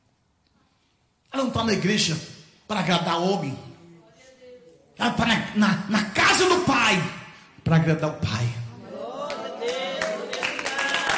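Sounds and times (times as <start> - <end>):
speech: 1.4 - 3.7, 5.0 - 8.6
church congregation clapping: 9.2 - 11.1.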